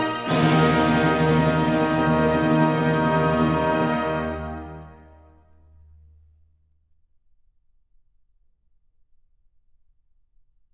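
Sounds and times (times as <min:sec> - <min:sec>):
national anthem: 0:00.0 - 0:05.4.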